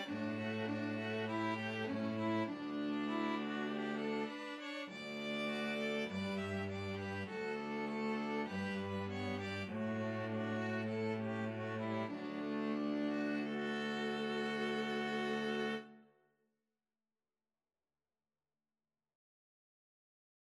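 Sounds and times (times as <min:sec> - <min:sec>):
string trio playing: 0:00.0 - 0:15.9.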